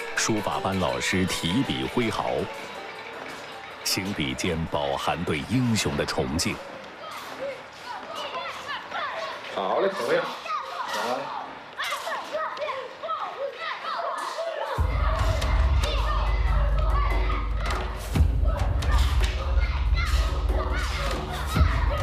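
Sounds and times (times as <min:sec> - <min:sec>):
speech: 0:00.2 - 0:02.7, 0:03.9 - 0:06.8, 0:09.6 - 0:10.4
children shouting in unison during a martial arts drill: 0:07.0 - 0:22.0.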